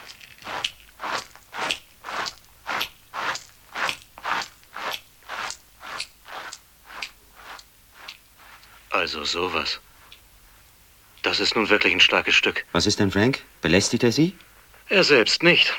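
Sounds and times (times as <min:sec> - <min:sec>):
small soil creature chewing a bitten-off piece of leaf: 0:00.0 - 0:08.8
speech: 0:09.0 - 0:09.9, 0:11.3 - 0:15.7.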